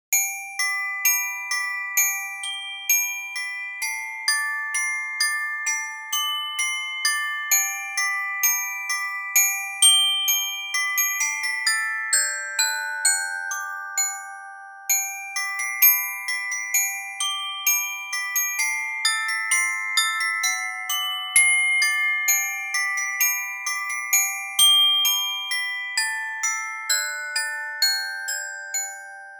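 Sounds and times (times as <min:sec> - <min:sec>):
cute music box song for kids: 0:00.2 - 0:29.3.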